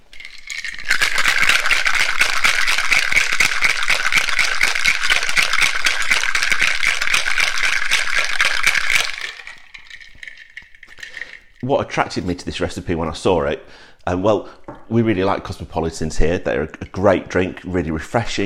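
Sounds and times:
cocktail shaker being shaken: 0.0 - 12.8
speech: 11.7 - 18.4.

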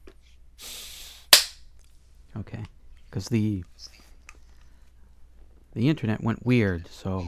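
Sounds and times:
hand clap: 1.3 - 1.6
speech: 2.4 - 4.0, 5.8 - 7.2.

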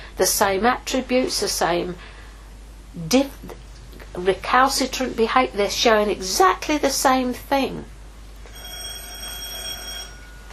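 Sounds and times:
speech: 0.2 - 2.1, 3.0 - 7.9
doorbell ringing: 8.5 - 10.5.

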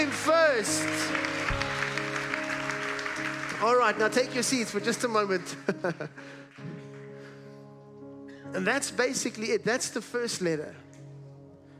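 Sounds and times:
audience clapping: 0.0 - 7.5
speech: 0.6 - 1.4, 3.6 - 6.7, 8.5 - 10.8.

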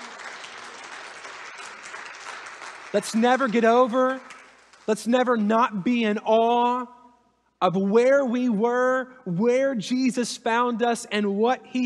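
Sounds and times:
audience clapping: 0.0 - 5.9
speech: 2.9 - 4.3, 4.9 - 7.0, 7.6 - 11.8.

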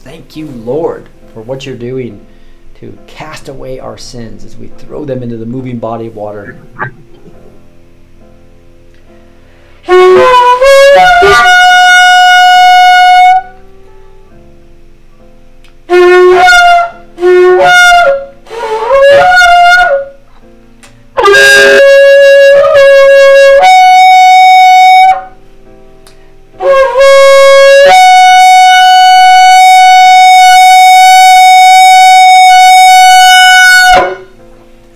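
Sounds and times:
speech: 0.1 - 7.0
shofar being blown: 9.8 - 13.8, 15.9 - 20.3, 21.2 - 25.4, 26.6 - 34.4.

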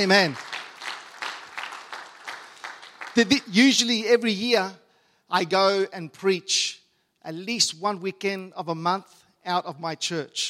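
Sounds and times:
speech: 0.0 - 0.4, 3.2 - 10.4
church congregation clapping for its pastor: 0.0 - 4.3.

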